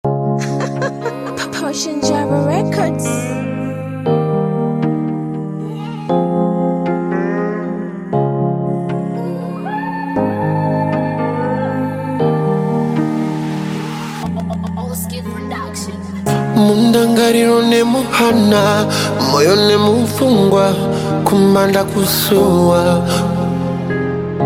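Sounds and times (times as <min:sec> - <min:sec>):
acoustic music: 0:00.1 - 0:24.4
laughter: 0:00.4 - 0:01.8, 0:14.2 - 0:14.9.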